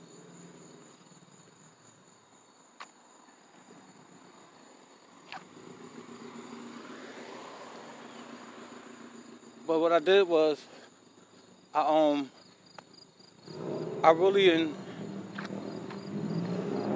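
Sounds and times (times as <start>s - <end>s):
crickets chirping outdoors at night: 0.0s - 16.9s
speech: 9.7s - 10.8s, 11.7s - 12.4s, 14.0s - 14.8s.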